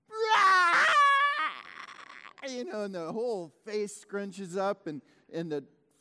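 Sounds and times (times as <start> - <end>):
voice imitating a hungry baby's sobbing cry: 0.1 - 2.7
speech: 2.5 - 5.8.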